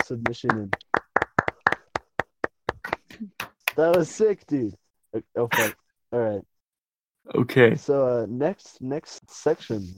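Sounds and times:
live audience applause: 0.0 - 2.0
speech: 0.1 - 0.9, 3.2 - 6.5, 7.2 - 9.9.

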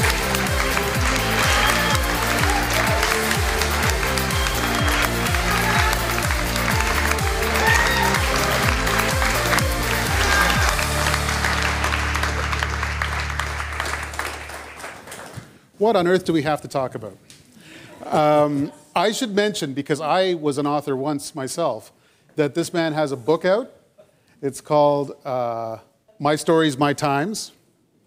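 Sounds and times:
rhythmic music with a pulsing beat: 0.0 - 14.4
audience applause welcoming Jean Chrétien at a public event: 0.0 - 15.6
speech: 15.8 - 17.3, 18.0 - 23.8, 24.4 - 27.6.

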